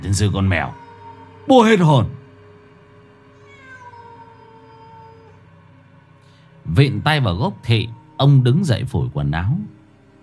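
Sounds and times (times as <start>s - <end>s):
speech: 0.0s - 0.8s, 1.5s - 2.2s, 6.7s - 9.8s
feral cat yowling in a persimmon tree: 0.2s - 2.2s, 3.2s - 5.6s, 6.7s - 8.5s.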